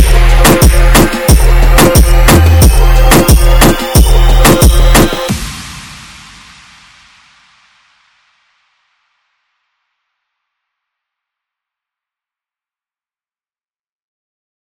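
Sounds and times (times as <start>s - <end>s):
remix music: 0.0s - 5.7s.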